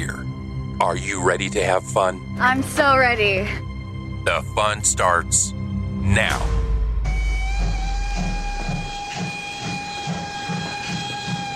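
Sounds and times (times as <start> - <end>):
speech: 0.0 - 6.6
steam locomotive: 7.1 - 11.5.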